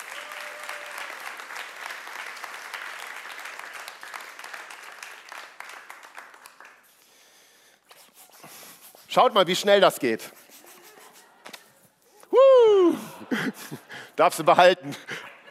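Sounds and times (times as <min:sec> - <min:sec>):
audience applause: 0:00.0 - 0:06.8
speech: 0:09.2 - 0:10.4, 0:14.2 - 0:15.2
laughter: 0:10.6 - 0:11.7, 0:12.8 - 0:15.4.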